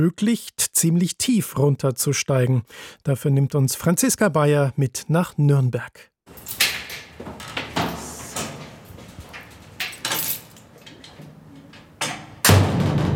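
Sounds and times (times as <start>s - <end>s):
speech: 0.0s - 6.6s
heavy metal door to the rock tunnels under Nuremberg falling shut: 6.4s - 10.7s, 11.8s - 13.1s.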